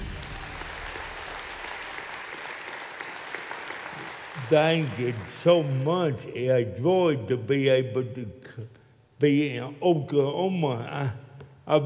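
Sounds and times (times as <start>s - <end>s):
audience applause welcoming a speaker onto the stage in Oklahoma: 0.0s - 6.2s
speech: 4.5s - 11.8s.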